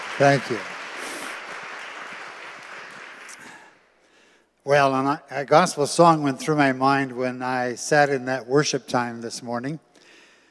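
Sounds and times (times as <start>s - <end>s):
crowd applauding: 0.0s - 3.8s
speech: 0.2s - 0.7s, 4.7s - 9.9s.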